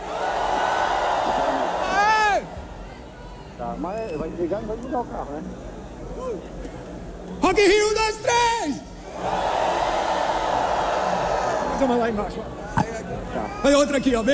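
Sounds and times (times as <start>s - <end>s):
festival crowd roaring and shouting: 0.0s - 3.6s, 8.6s - 12.4s
speech: 4.3s - 9.4s, 11.8s - 12.9s, 13.6s - 14.3s.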